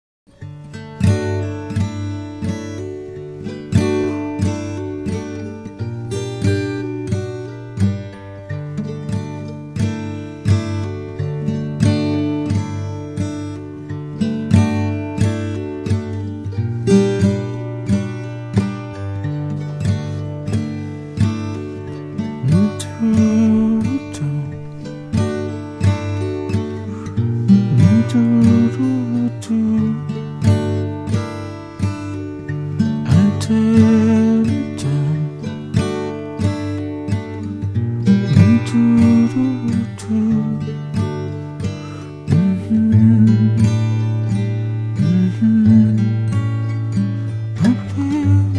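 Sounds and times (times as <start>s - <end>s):
guitar serenade: 0.3s - 48.5s
mandolin serenade: 0.4s - 48.5s.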